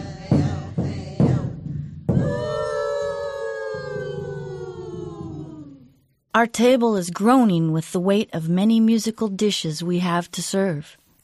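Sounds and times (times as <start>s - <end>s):
welcoming song of the native tribes of the Northwest: 0.0s - 6.1s
speech: 6.4s - 11.2s.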